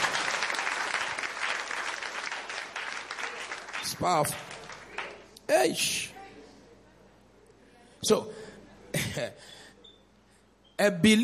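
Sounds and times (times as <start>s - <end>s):
audience clapping: 0.0s - 5.4s
speech: 3.9s - 4.5s, 5.5s - 6.1s, 8.0s - 8.4s, 9.2s - 9.6s, 10.8s - 11.2s.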